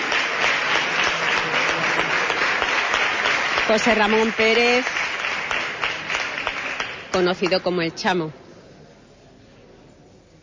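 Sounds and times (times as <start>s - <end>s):
audience applause: 0.0s - 7.6s
speech: 3.7s - 5.0s, 7.1s - 8.4s.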